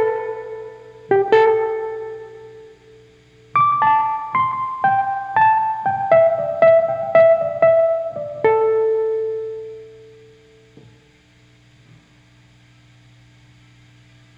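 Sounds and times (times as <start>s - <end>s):
guitar: 0.0s - 11.1s.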